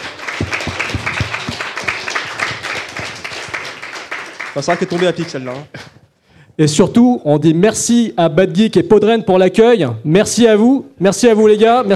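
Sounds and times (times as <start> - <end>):
audience applause in an ovation for the catering women: 0.0 - 5.8
speech: 4.6 - 5.8, 6.6 - 11.9.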